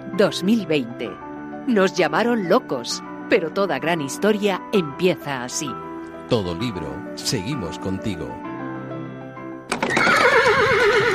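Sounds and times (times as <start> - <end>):
speech: 0.2 - 8.4
horse neighing: 9.7 - 11.1.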